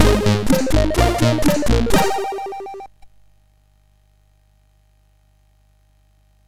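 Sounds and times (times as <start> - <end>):
MOS6581R4 SID chip music: 0.0 - 3.1.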